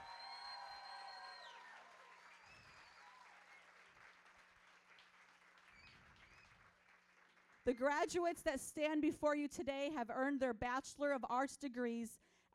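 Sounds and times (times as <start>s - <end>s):
audience applause: 0.0s - 7.6s
speech: 7.6s - 12.5s.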